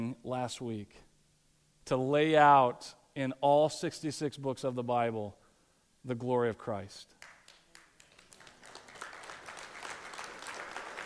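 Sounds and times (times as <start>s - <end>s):
speech: 0.3s - 1.1s, 1.8s - 5.4s, 6.0s - 7.2s
clapping: 7.2s - 11.0s.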